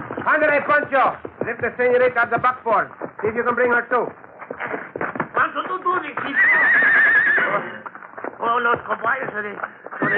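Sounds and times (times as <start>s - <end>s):
horse hooves clip-clopping: 0.0s - 10.1s
speech: 0.2s - 4.2s, 8.6s - 10.1s
horses neighing beside a buckboard: 6.1s - 7.9s, 9.9s - 10.1s.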